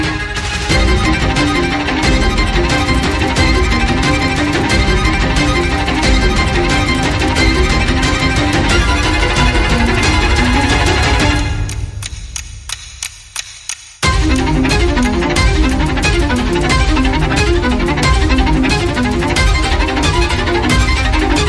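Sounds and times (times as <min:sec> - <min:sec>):
percussion: 0:00.0 - 0:21.4
strings: 0:00.0 - 0:21.4.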